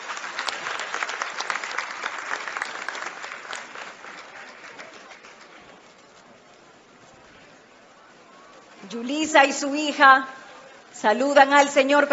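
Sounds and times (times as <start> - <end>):
audience applause: 0.0 - 6.2
speech: 8.9 - 10.4, 11.0 - 12.1.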